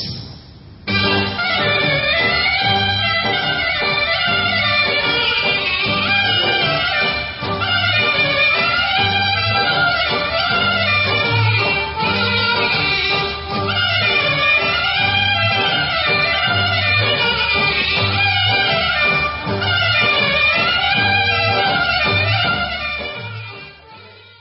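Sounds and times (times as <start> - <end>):
Greek syrtos dance music: 0.9 - 24.3.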